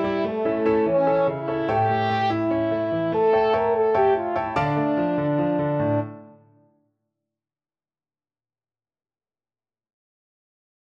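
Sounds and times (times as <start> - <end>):
french horn playing: 0.0 - 6.4.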